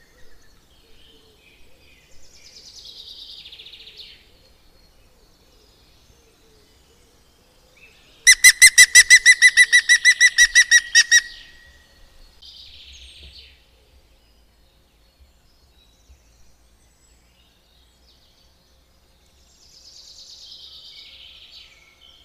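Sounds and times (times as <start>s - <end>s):
European green woodpecker laughing call: 8.3s - 11.8s.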